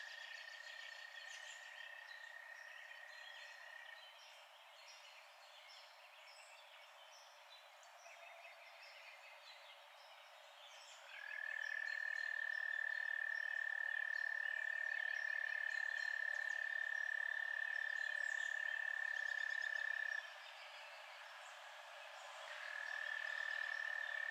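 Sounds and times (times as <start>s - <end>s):
night frog chorus holding a steady high tone: 0.0s - 4.1s, 11.0s - 20.8s, 21.4s - 24.2s.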